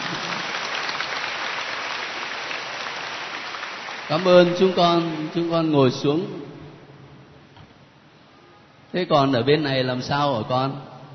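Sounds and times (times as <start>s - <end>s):
church congregation applauding to congratulate the children: 0.0s - 5.7s
speech: 4.1s - 6.5s, 8.9s - 10.9s.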